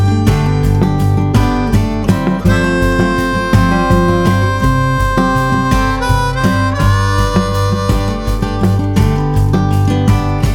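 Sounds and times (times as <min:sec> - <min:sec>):
acoustic harmonica: 0:00.0 - 0:10.4.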